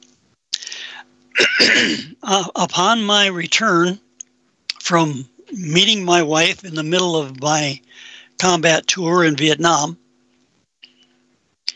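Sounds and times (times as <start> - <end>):
throat clearing from someone with something in the throat: 1.4 - 2.2
speech: 1.4 - 4.0, 4.9 - 10.0.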